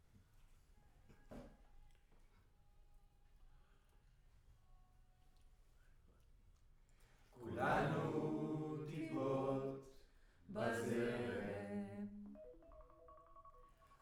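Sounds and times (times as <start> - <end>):
choir singing in room: 7.4 - 12.2.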